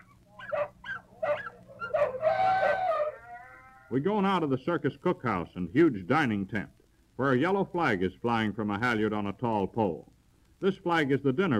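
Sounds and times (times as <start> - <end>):
sea lions barking: 0.0 - 3.9
speech: 3.9 - 11.5.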